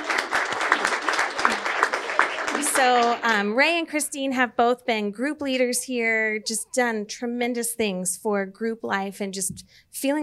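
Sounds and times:
audience applause: 0.0 - 3.4
speech: 2.8 - 10.2.

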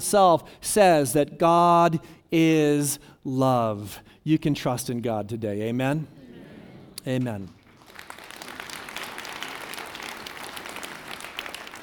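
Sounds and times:
speech: 0.0 - 6.2, 7.0 - 7.6
audience clapping: 7.2 - 11.8.

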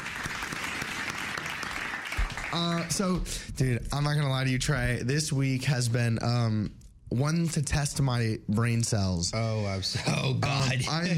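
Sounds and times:
clapping: 0.0 - 3.0
speech: 2.5 - 11.1.

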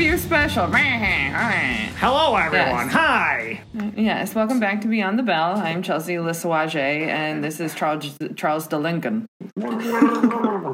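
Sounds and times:
speech: 0.0 - 10.7
person gargling water: 9.4 - 10.7.

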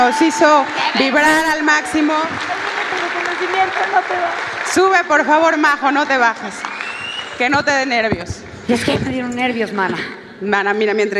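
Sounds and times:
speech: 0.0 - 2.7, 3.4 - 6.8, 7.4 - 11.1
audience applause: 0.0 - 7.6.

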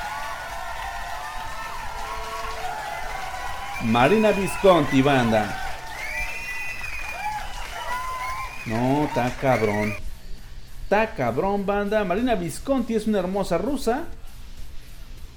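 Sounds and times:
audience applause and cheering: 0.0 - 10.0
speech: 3.8 - 5.6, 8.7 - 10.0, 10.9 - 14.2.

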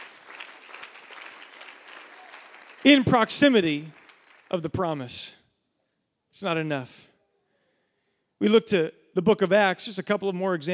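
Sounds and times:
audience clapping hands: 0.0 - 5.0
speech: 2.8 - 5.4, 6.3 - 7.1, 8.4 - 10.7.

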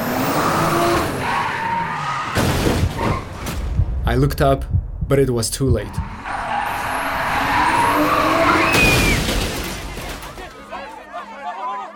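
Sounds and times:
car tires screeching in a skid: 0.0 - 3.5, 5.9 - 10.3
engine rumbling: 2.5 - 10.6
speech: 4.1 - 6.2.

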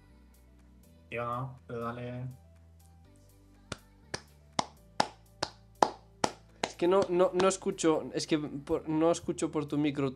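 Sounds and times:
speech: 1.1 - 2.4, 6.8 - 10.1
one person clapping hands: 3.7 - 7.6.

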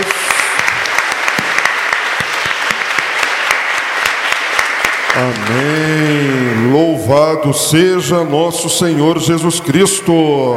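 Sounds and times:
audience applauding: 0.0 - 6.9
speech: 5.2 - 10.5.

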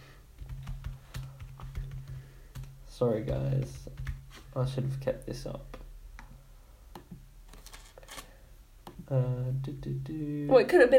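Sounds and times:
typing on a computer keyboard: 0.4 - 2.7
speech: 3.0 - 4.0, 4.6 - 5.8, 9.1 - 10.9.

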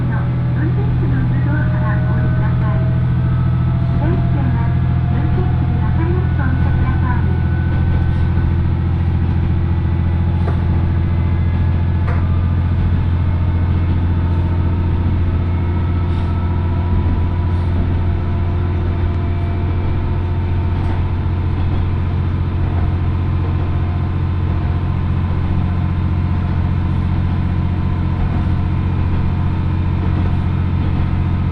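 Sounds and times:
Oigami Line train engine drone and rumble: 0.0 - 31.5
faint rising and falling whine tones: 0.0 - 31.5.

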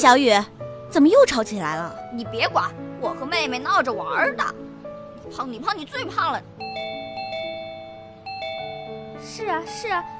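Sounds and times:
speech: 0.0 - 4.6, 5.3 - 6.9, 9.2 - 10.1
electronic doorbell chiming: 6.6 - 9.6.

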